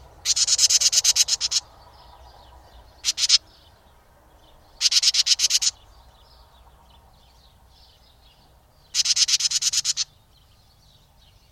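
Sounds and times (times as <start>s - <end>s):
birdcalls: 0.0s - 11.5s.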